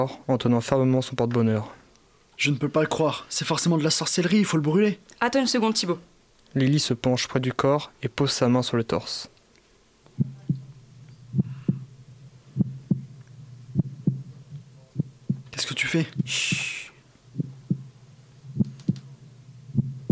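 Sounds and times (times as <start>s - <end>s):
speech: 0.0s - 1.8s, 2.4s - 9.3s, 15.9s - 16.5s
heartbeat: 10.2s - 15.6s, 16.2s - 20.0s.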